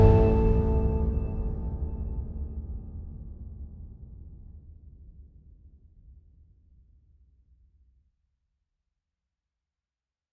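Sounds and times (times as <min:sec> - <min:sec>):
driving hopeful anthemic music: 0:00.0 - 0:03.1.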